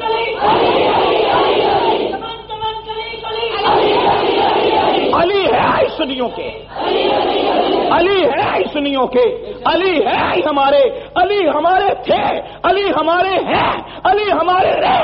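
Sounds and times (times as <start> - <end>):
large crowd chanting a religious slogan in unison: 0.2 - 2.2, 3.5 - 5.5, 6.7 - 8.7
speech: 6.1 - 6.9, 7.9 - 15.0.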